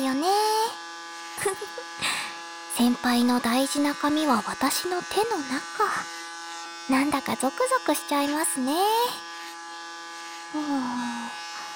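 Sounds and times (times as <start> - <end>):
electric clippers buzzing while shaving hair: 0.0 - 11.7
speech: 1.4 - 2.2, 2.8 - 6.2, 6.9 - 9.3, 10.5 - 11.4.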